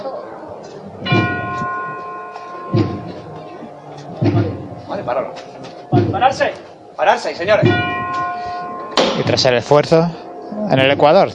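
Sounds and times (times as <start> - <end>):
murmur: 0.0 - 11.3
tubular bell ringing in procession: 1.0 - 5.1, 7.5 - 11.3
dull heavy thumps: 2.7 - 3.3, 4.1 - 5.0, 5.8 - 6.5, 7.5 - 9.5
speech: 4.4 - 5.6, 6.2 - 8.0, 9.3 - 11.3.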